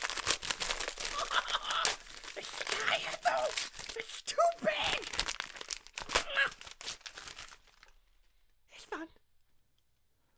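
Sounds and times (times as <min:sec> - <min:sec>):
wrapping paper ripping as a gift package is torn open: 0:00.0 - 0:09.0.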